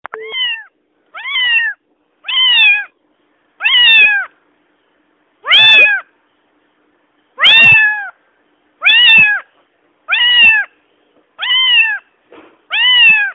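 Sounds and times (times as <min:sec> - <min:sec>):
cat meowing: 0:00.1 - 0:02.9, 0:03.6 - 0:04.3, 0:05.4 - 0:06.0, 0:07.4 - 0:08.2, 0:08.8 - 0:09.5, 0:10.1 - 0:10.7, 0:11.4 - 0:12.1, 0:12.7 - 0:13.3.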